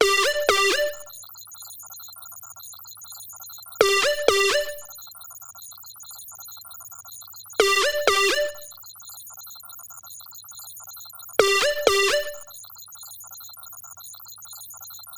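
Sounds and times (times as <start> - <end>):
ringtone: 0.0 - 1.2, 3.8 - 5.0, 7.6 - 8.8, 11.4 - 12.6.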